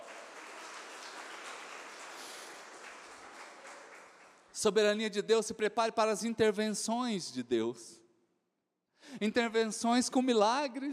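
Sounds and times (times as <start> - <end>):
audience applauding loudly: 0.0 - 4.6
speech: 4.6 - 8.0, 9.0 - 10.9.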